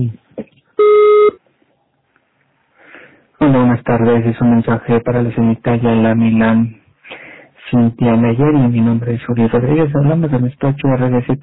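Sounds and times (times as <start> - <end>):
speech: 0.0 - 0.2, 3.4 - 11.4
voicemail beep before message recording: 0.8 - 1.4.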